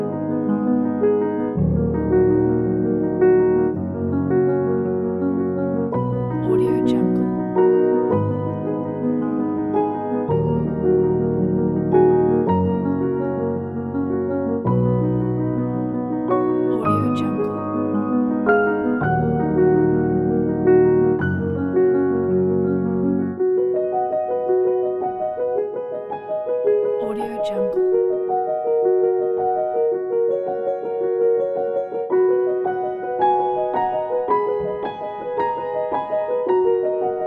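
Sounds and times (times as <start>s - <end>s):
piano melody: 0.0s - 37.2s.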